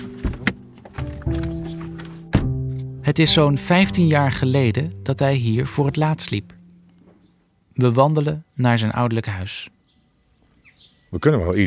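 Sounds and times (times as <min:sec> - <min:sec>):
car doors shutting as people get out: 0:00.0 - 0:02.9
speech: 0:03.1 - 0:06.6, 0:07.8 - 0:09.8, 0:11.1 - 0:11.6.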